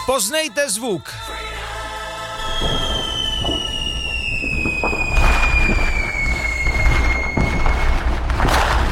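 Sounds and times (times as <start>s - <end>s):
speech: 0.1s - 1.7s
fireworks exploding: 2.3s - 8.9s.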